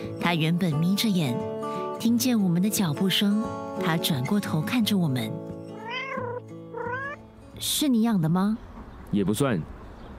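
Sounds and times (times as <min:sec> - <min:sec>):
speech: 0:00.3 - 0:05.5, 0:07.6 - 0:09.8
cat meowing: 0:05.7 - 0:07.2.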